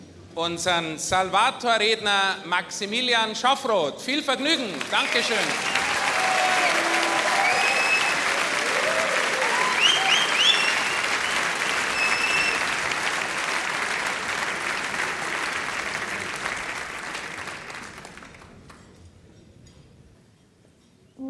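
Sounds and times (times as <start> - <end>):
speech: 0.4 - 5.9
audience applause: 4.5 - 18.8.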